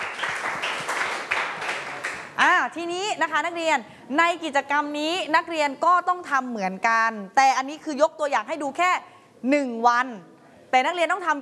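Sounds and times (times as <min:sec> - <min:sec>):
class of students clapping for their class leader: 0:00.0 - 0:02.4
speech: 0:02.6 - 0:11.4.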